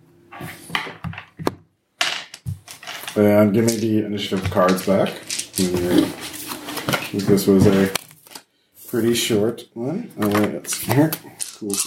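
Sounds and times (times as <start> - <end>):
dice clattering and rattling: 2.0 - 5.8, 10.7 - 11.8
speech: 3.2 - 6.4, 7.1 - 8.0, 8.9 - 11.8.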